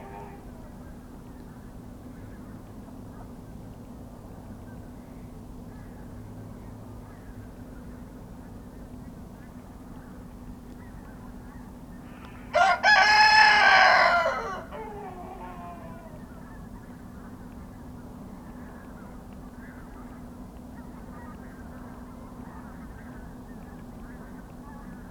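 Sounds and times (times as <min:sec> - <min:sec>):
rooster crowing in a pen at a small farmhouse in Kawcze, Poland: 0:12.5 - 0:16.2.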